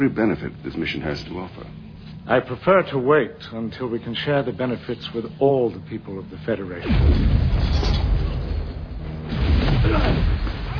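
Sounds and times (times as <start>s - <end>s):
speech: 0.0s - 7.9s, 9.8s - 10.3s
phaser blast hitting a starship: 6.8s - 10.7s.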